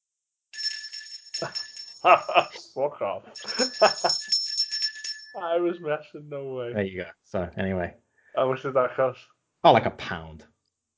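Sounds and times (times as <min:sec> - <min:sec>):
bell ringing: 0:00.6 - 0:05.8
laughter: 0:01.4 - 0:04.3, 0:05.4 - 0:07.0
speech: 0:01.4 - 0:04.4, 0:05.4 - 0:10.5.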